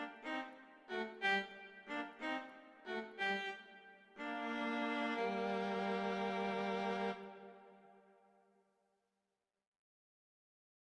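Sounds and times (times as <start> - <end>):
violin and viola duet, andante non troppo lento: 0.0 - 7.7.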